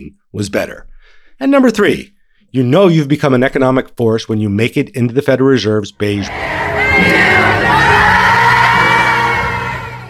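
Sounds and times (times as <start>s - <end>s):
speech: 0.0s - 7.7s
fans cheering and yelling outside Lincoln Financial Field: 6.2s - 10.0s.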